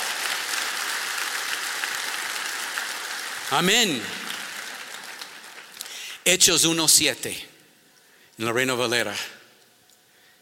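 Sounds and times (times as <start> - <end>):
audience applause: 0.0 - 6.1
speech: 3.5 - 4.2, 6.3 - 7.5, 8.4 - 9.4.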